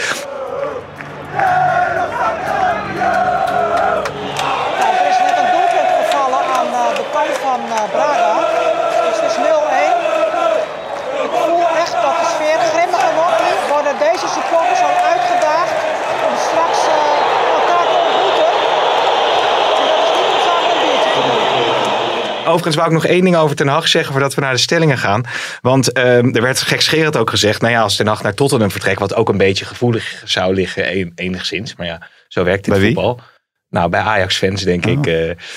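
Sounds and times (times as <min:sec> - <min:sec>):
football supporters shouting in the stands: 0:00.0 - 0:23.2
speech: 0:22.6 - 0:35.5.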